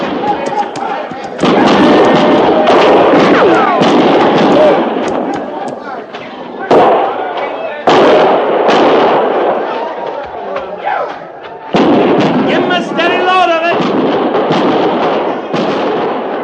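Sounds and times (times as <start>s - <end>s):
voices shouting: 0.0s - 8.4s, 9.4s - 13.7s
artillery in a radio drama battle scene at Fort Laramie: 0.0s - 10.2s, 11.7s - 16.4s
gunfire in a radio drama battle scene at Fort Laramie: 0.0s - 16.4s.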